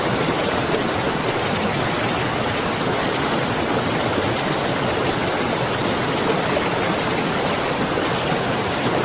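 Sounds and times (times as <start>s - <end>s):
large water flow: 0.0s - 9.0s.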